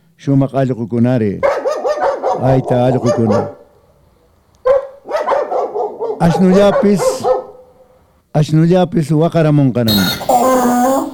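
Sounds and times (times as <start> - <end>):
speech: 0.2 - 1.5, 2.4 - 3.6, 6.2 - 7.3, 8.4 - 10.4
dog barking and yelping: 1.4 - 3.7, 4.6 - 8.0.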